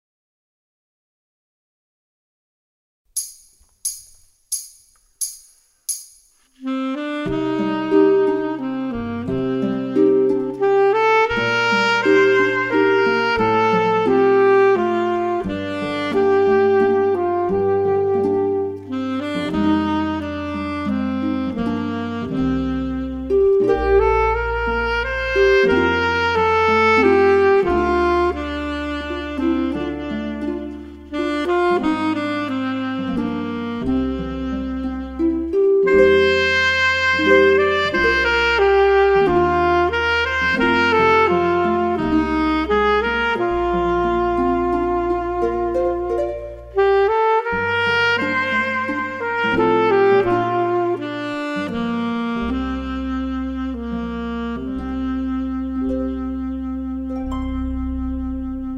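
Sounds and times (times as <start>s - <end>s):
saxophone: 6.5s - 58.7s.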